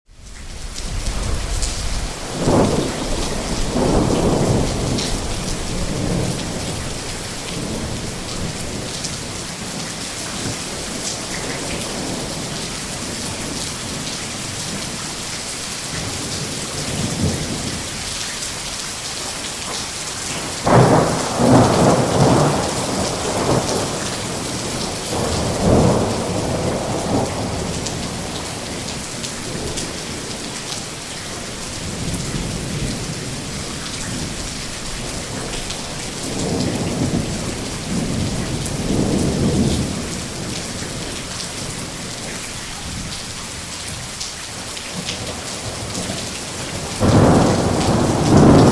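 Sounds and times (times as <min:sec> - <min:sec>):
rain: 0:00.1 - 0:48.7
thunder: 0:00.5 - 0:10.7, 0:20.4 - 0:30.3, 0:31.8 - 0:41.9, 0:45.0 - 0:48.7.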